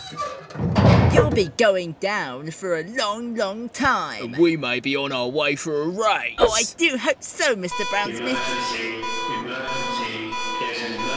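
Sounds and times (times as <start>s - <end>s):
speech: 0.1s - 10.0s
security alarm going off: 7.7s - 11.1s.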